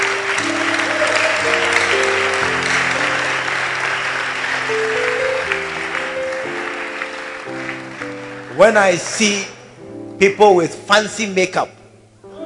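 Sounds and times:
audience clapping: 0.0 - 9.8
speech: 8.6 - 9.6, 10.2 - 11.8.

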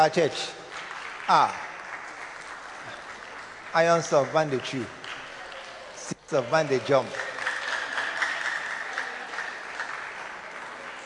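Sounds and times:
speech: 0.0 - 0.6, 1.3 - 1.7, 3.7 - 5.0, 6.3 - 7.2
audience clapping: 0.0 - 11.0.

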